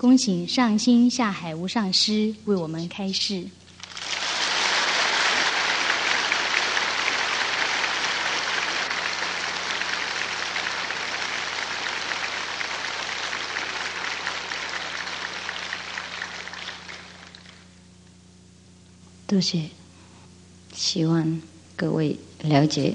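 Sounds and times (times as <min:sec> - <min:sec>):
speech: 0:00.0 - 0:03.6, 0:19.3 - 0:19.8, 0:20.8 - 0:22.9
audience applause: 0:03.8 - 0:17.7.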